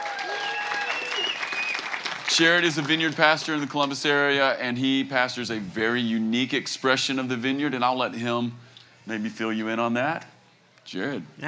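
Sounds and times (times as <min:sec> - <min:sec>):
audience round of applause: 0:00.0 - 0:04.2
speech: 0:02.4 - 0:10.3, 0:10.9 - 0:11.4.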